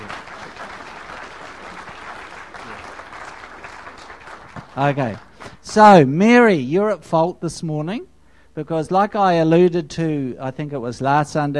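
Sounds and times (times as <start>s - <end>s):
round of applause: 0.0s - 5.6s
speech: 4.8s - 11.5s.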